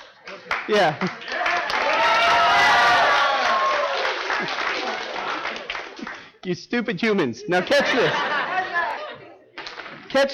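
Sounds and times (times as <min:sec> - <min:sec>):
audience clapping: 0:00.0 - 0:07.2, 0:09.6 - 0:10.3
speech: 0:00.4 - 0:01.4, 0:06.4 - 0:08.4, 0:10.1 - 0:10.3
laughter: 0:04.2 - 0:06.2, 0:07.0 - 0:09.6.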